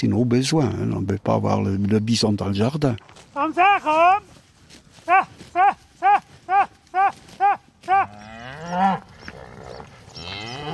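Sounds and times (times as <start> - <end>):
speech: 0.0 - 4.3, 5.1 - 9.1
herd of cows mooing: 7.1 - 10.7.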